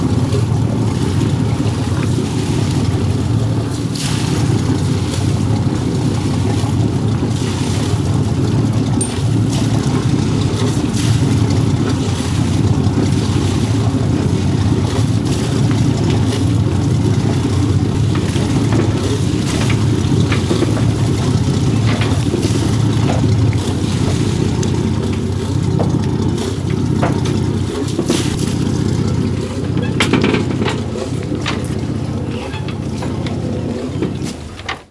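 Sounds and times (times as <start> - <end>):
boat in dock: 0.0 - 34.8.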